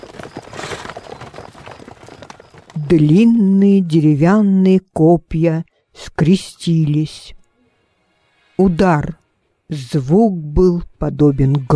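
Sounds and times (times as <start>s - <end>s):
horses galloping at full speed: 0.0s - 3.8s
speech: 2.9s - 7.4s, 8.6s - 11.7s.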